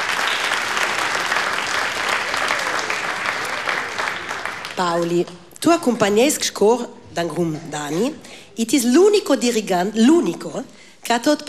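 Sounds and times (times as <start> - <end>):
audience applause: 0.0 - 5.4
speech: 4.8 - 11.4.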